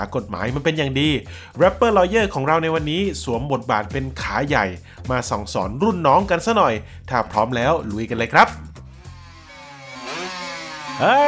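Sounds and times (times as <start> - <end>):
speech: 0.0 - 8.7, 11.0 - 11.2
motorcycle with modified loud exhaust revving: 8.8 - 11.2.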